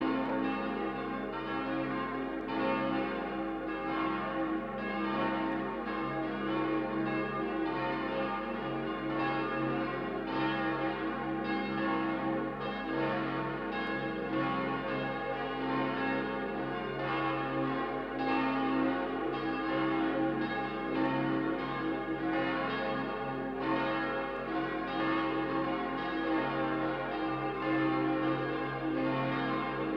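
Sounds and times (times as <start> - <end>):
monastery bells ringing: 0.0 - 29.9.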